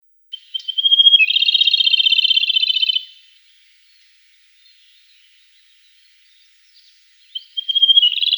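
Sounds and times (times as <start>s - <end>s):
rufous-tailed robin song: 0.3s - 3.2s, 3.8s - 8.3s.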